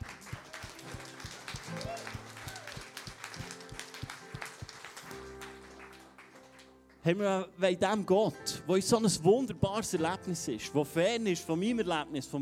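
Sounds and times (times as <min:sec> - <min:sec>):
audience applause: 0:00.0 - 0:06.9
speech: 0:07.0 - 0:12.4.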